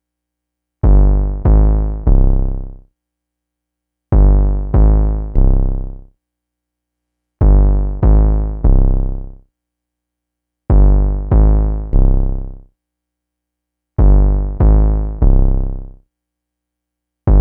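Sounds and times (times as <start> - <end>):
TR808 drum machine kick bass: 0.8 - 2.7, 4.2 - 5.8, 7.4 - 9.1, 10.7 - 12.2, 14.0 - 15.8.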